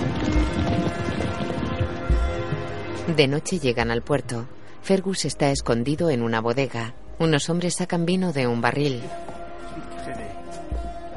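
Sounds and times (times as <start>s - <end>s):
horses' hooves clopping along a road beside a river: 0.0s - 3.2s
speech: 3.1s - 9.9s.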